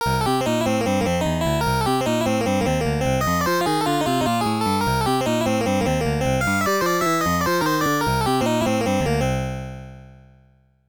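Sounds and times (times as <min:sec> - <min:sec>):
result music: 0:00.0 - 0:10.8.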